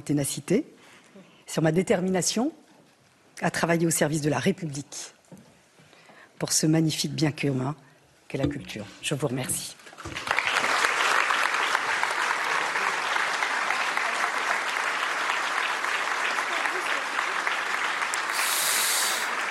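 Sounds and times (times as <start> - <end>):
speech: 0.0 - 0.8, 1.5 - 2.6, 3.4 - 5.2, 6.4 - 10.3
applause from a large indoor audience: 10.1 - 19.4.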